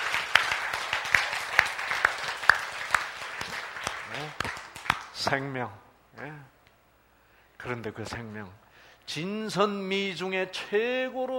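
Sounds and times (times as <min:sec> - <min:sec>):
audience applause at a sermon: 0:00.0 - 0:05.2
speech: 0:04.2 - 0:04.4, 0:05.2 - 0:06.6, 0:07.6 - 0:11.3.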